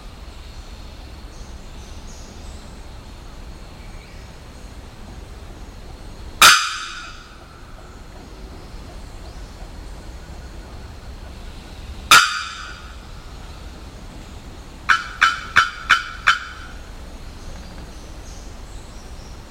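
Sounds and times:
bearded bellbird loud metallic bocks: 6.4s - 17.9s.

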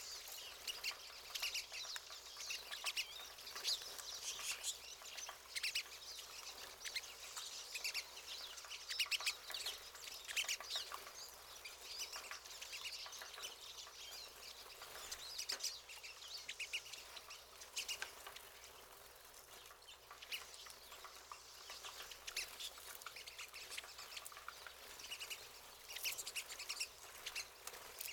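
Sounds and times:
pine siskin flock calling: 0.0s - 28.1s.

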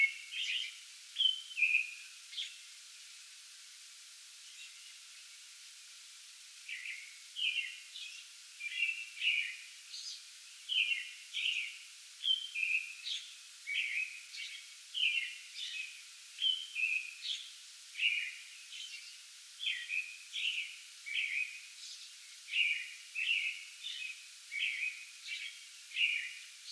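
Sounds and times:
American robin song: 0.0s - 2.6s, 6.6s - 26.7s
background hiss: 0.0s - 26.7s.

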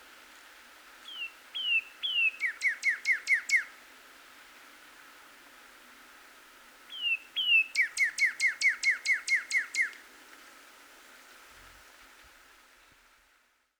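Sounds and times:
northern cardinal song: 1.0s - 3.7s, 6.9s - 10.0s.

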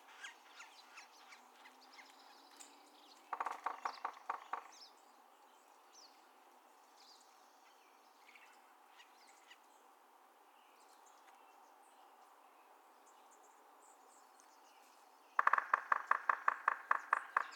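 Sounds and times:
Yellow-bellied Sapsucker drumming: 3.3s - 4.9s, 15.4s - 17.5s.

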